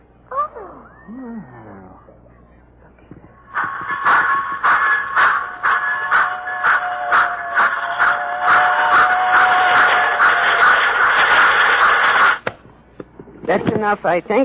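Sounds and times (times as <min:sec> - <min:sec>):
speech: 0:01.1 - 0:01.8, 0:13.8 - 0:14.4
miniature model railroad trains running: 0:03.5 - 0:12.4.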